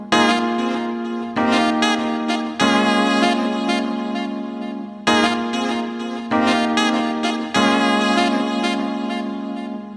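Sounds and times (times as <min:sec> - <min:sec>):
saxophone: 0:00.0 - 0:09.9.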